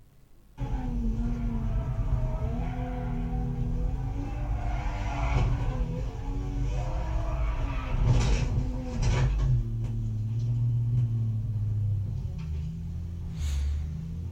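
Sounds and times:
car engine droning: 0:00.0 - 0:14.2.

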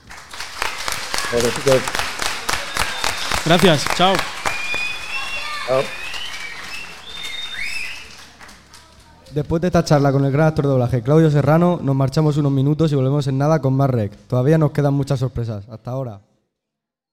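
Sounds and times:
applause: 0:00.0 - 0:09.3
speech: 0:01.3 - 0:02.0, 0:03.4 - 0:04.4, 0:05.7 - 0:06.0, 0:09.3 - 0:16.3.

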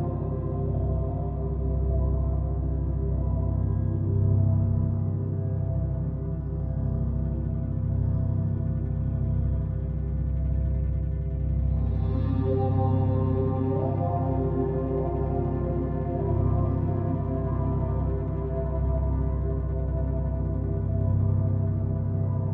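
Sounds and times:
binaural beats low sustained humming tones: 0:00.0 - 0:22.5.

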